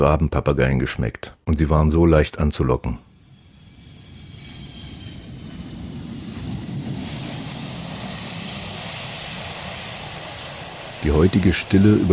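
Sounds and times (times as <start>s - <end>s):
speech: 0.0s - 3.1s, 11.1s - 12.1s
tourist airplane on landing approach: 3.0s - 12.1s.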